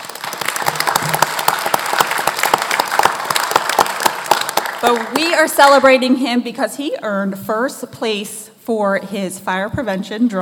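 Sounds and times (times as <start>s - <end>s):
audience applause: 0.0s - 5.4s
speech: 4.8s - 10.4s.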